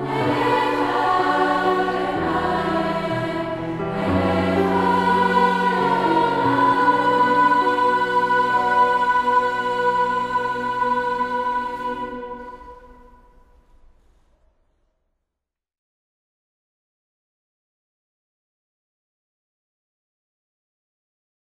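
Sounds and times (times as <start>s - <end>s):
Hebrew psalm singing: 0.0s - 13.8s.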